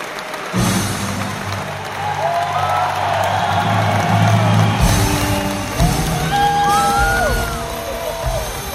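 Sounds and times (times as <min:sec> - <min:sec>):
fanfare: 0:00.5 - 0:08.7.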